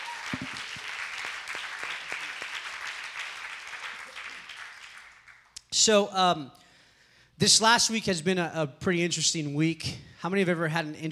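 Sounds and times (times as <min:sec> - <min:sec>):
audience applause: 0:00.0 - 0:05.5
speech: 0:05.8 - 0:06.6, 0:07.4 - 0:11.1.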